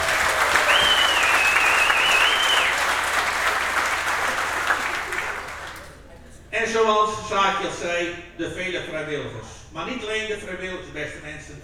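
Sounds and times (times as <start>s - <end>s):
brief high whistle: 0.0s - 3.0s
audience clapping: 0.0s - 6.1s
speech: 6.9s - 11.6s.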